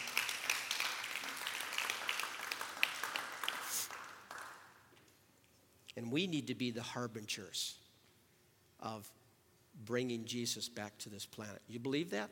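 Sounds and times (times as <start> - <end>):
audience clapping: 0.0 - 4.9
speech: 6.0 - 7.8, 8.8 - 9.2, 9.8 - 12.3.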